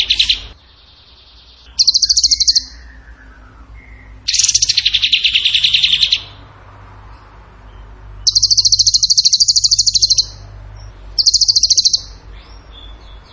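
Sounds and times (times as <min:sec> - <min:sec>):
bird trilling song: 0:00.0 - 0:13.3.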